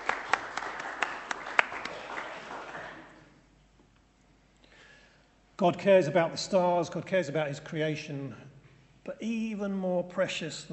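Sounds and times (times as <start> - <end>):
small group applauding: 0.0 - 3.4
speech: 5.6 - 10.7.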